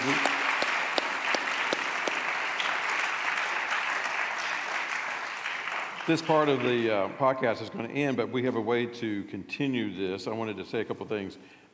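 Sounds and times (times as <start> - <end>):
audience applause: 0.0 - 7.0
speech: 6.1 - 11.7.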